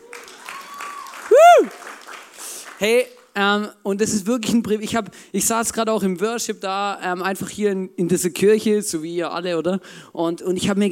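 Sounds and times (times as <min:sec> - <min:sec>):
audience applause: 0:00.0 - 0:03.2
speech: 0:02.8 - 0:10.8.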